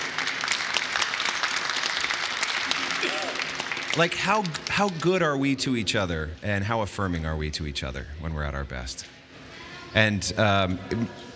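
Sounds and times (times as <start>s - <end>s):
audience clapping: 0.0s - 5.4s
speech: 4.0s - 9.2s, 9.9s - 11.3s.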